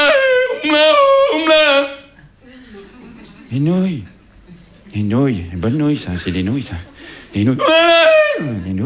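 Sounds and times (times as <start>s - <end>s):
person yodeling Tyrolean style: 0.0s - 2.1s, 7.6s - 8.6s
laughter: 0.7s - 8.8s
speech: 3.5s - 4.1s, 4.9s - 8.8s.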